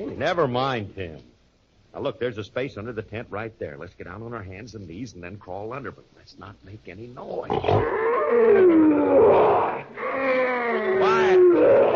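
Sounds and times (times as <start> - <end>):
speech: 0.0 - 1.3, 2.0 - 11.0
lion roaring in a cage: 7.5 - 11.9.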